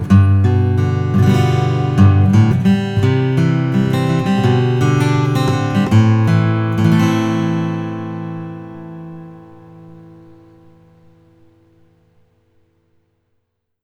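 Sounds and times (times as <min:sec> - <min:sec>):
acoustic guitar with natural finish: 0:00.0 - 0:13.2.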